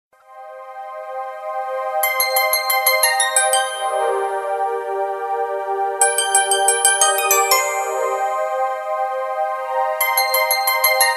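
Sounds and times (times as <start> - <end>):
romantic Valentine music: 0.2 - 11.1.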